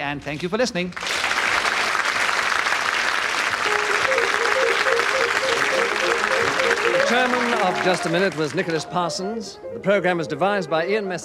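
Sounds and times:
speech: 0:00.0 - 0:01.3, 0:07.2 - 0:11.2
studio audience applause: 0:01.0 - 0:09.0
faint melodic tune: 0:03.7 - 0:11.2.

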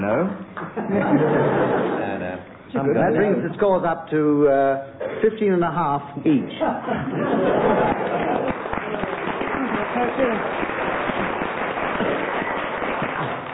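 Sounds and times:
speech: 0:00.0 - 0:02.1, 0:02.7 - 0:08.2, 0:10.0 - 0:10.6
laughter: 0:00.8 - 0:02.4, 0:06.6 - 0:10.4
audience clapping: 0:07.5 - 0:13.5.

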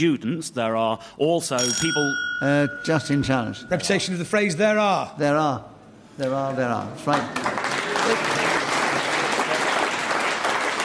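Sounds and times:
speech: 0:00.0 - 0:08.3
audience applause: 0:07.1 - 0:10.8.

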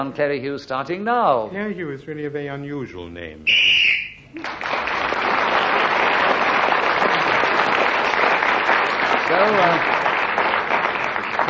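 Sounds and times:
speech: 0:00.0 - 0:03.7, 0:09.3 - 0:10.0
referee's whistle blown: 0:03.5 - 0:04.2
crowd applause: 0:04.3 - 0:11.4.

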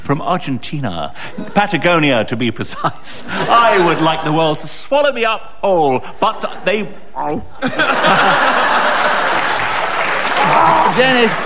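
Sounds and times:
speech: 0:00.1 - 0:08.9, 0:10.6 - 0:11.4
laughter: 0:02.7 - 0:04.7, 0:06.2 - 0:11.4
crowd noise: 0:06.2 - 0:11.4
quiz show contestant buzzer high electronic chime: 0:08.0 - 0:09.2
applause: 0:09.0 - 0:11.4.

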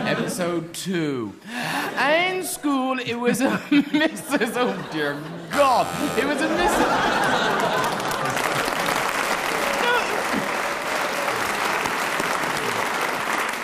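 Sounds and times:
laughter: 0:00.0 - 0:00.6, 0:03.2 - 0:10.7
speech: 0:00.4 - 0:08.0
audience applause: 0:06.3 - 0:13.6.

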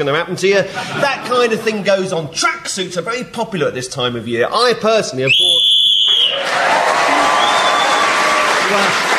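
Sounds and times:
speech: 0:00.0 - 0:05.8, 0:08.7 - 0:09.0
game show whistle blown to end turn: 0:05.3 - 0:06.4, 0:07.2 - 0:08.1.

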